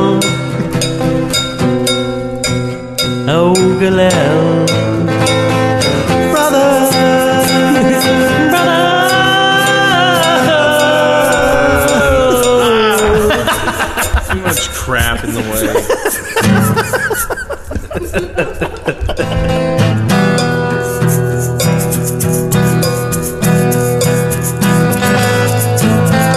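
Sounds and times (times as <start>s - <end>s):
loud music: 0.0s - 26.3s
cowbell strikes in music: 0.1s - 14.8s, 20.1s - 26.3s
laughter: 0.4s - 1.0s, 10.6s - 20.1s
person exclaiming: 11.0s - 14.6s.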